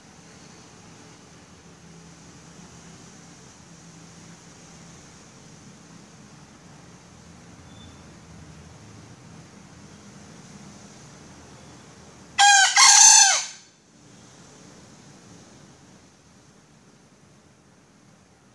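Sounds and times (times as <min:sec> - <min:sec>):
female junglefowl giving a raspy crow-like call: 0:12.4 - 0:13.7.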